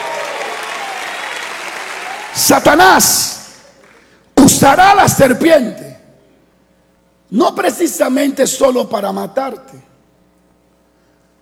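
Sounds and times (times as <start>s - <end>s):
congregation applauding during a church sermon: 0.0s - 4.2s
speech: 2.4s - 3.4s, 4.6s - 5.8s, 7.3s - 9.9s.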